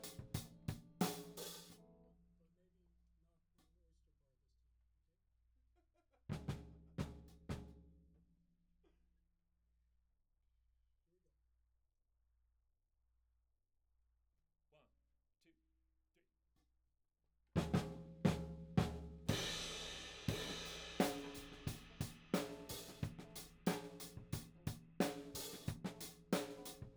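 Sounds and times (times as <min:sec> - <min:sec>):
tom drum: 0:00.0 - 0:01.7, 0:06.3 - 0:07.8, 0:17.6 - 0:26.9.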